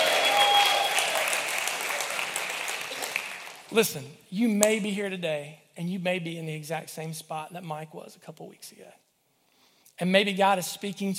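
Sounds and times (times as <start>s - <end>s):
audience cheering: 0.0s - 3.7s
speech: 3.7s - 9.0s, 10.0s - 11.1s.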